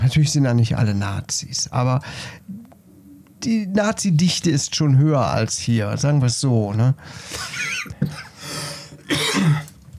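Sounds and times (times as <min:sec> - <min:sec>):
speech: 0:00.1 - 0:02.6, 0:03.4 - 0:08.2, 0:09.1 - 0:09.6
man coughing after choking: 0:09.0 - 0:09.8.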